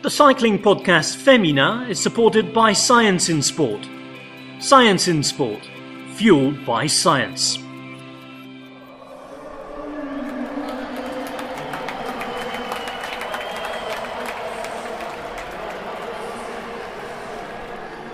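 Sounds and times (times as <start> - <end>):
speech: 0.0 - 4.0, 4.6 - 7.7
murmur of voices: 8.9 - 18.1
bustle: 9.1 - 18.1
scattered clapping from spread-out outdoor crowd: 10.2 - 17.8.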